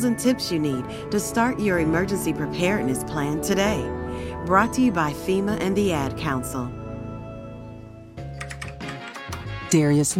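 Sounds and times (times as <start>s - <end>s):
speech: 0.0s - 6.8s, 9.7s - 10.1s
typing on a computer keyboard entering a zip code: 8.3s - 9.5s.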